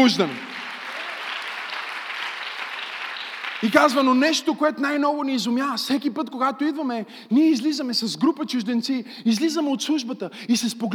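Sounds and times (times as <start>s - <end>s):
speech: 0.0s - 0.5s, 3.6s - 10.9s
audience applauding: 0.0s - 4.2s.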